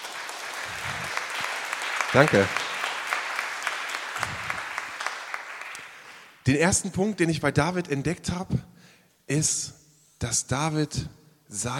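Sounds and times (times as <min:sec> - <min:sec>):
short applause for the technical team: 0:00.0 - 0:06.4
speech: 0:02.2 - 0:02.6, 0:06.4 - 0:08.7, 0:09.3 - 0:11.7.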